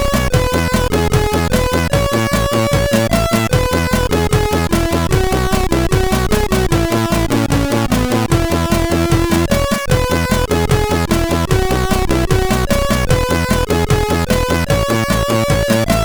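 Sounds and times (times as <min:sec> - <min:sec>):
tune on a SID CSG8580R5 sound chip: 0:00.0 - 0:16.0.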